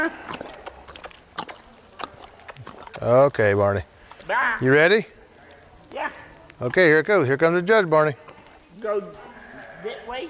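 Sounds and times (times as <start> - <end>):
speech: 0.0 - 0.4, 3.0 - 5.2, 5.9 - 8.2, 8.8 - 10.2
hooves of a mare being backed up at a horse show: 0.0 - 10.2.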